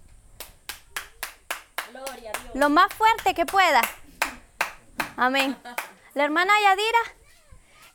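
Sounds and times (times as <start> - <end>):
single person clapping hands strongly: 0.4 - 6.0
speech: 1.9 - 4.0, 5.2 - 7.2.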